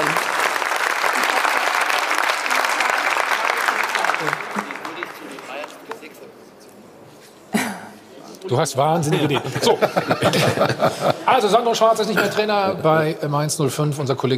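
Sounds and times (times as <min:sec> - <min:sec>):
audience clapping: 0:00.0 - 0:06.2
speech: 0:08.5 - 0:14.3
laughter: 0:09.0 - 0:12.4.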